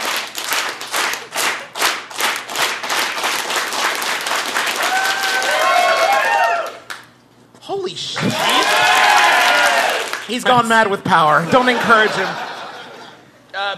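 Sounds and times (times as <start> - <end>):
audience slow clap: 0.0 - 7.2, 8.3 - 10.3
speech: 10.3 - 12.4, 13.5 - 13.7
laughter: 11.3 - 13.5.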